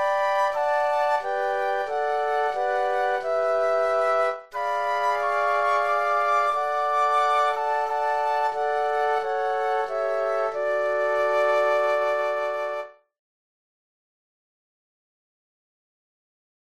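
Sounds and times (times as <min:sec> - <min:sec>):
flute quartet: 0:00.0 - 0:13.0.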